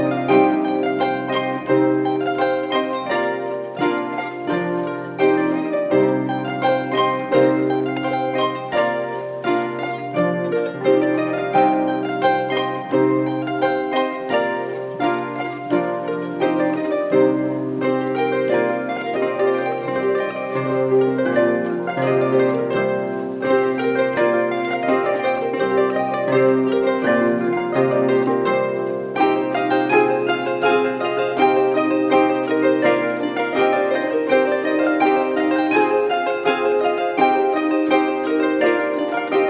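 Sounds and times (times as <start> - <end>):
harps: 0.0 - 39.4.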